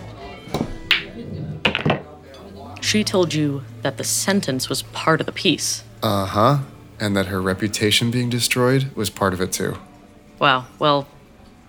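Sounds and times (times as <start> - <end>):
billiard balls clacking as the eight ball is shot into the corner pocket: 0.5 - 2.2
speech: 2.9 - 11.2.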